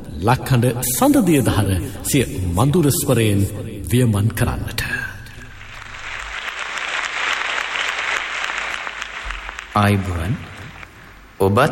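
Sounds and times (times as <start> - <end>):
speech: 0.2 - 4.9, 9.8 - 10.5, 11.4 - 11.7
audience applause for the singers and musicians at a concert: 5.5 - 11.6.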